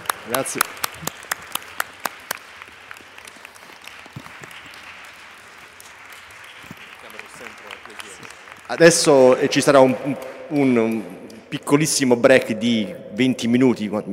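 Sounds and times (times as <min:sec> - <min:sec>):
audience applause: 0:00.0 - 0:11.1
speech: 0:00.2 - 0:01.4, 0:08.7 - 0:14.1.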